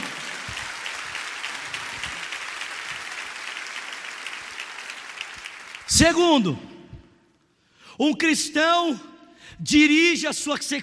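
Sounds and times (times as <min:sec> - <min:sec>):
audience applauding: 0:00.0 - 0:06.2
speech: 0:05.9 - 0:06.7, 0:08.0 - 0:10.8.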